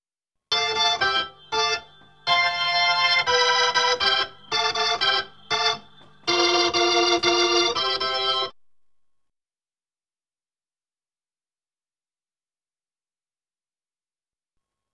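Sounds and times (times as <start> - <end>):
Hammond B3 organ: 0.5 - 8.6.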